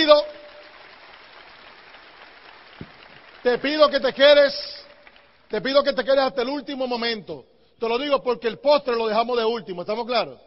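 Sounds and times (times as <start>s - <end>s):
speech: 0.0s - 0.4s, 3.4s - 4.8s, 5.5s - 10.4s
audience applause: 0.0s - 5.4s.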